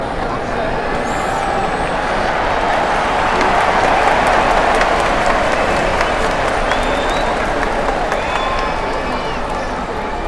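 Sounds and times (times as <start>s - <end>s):
crowd cheering: 0.0s - 10.2s.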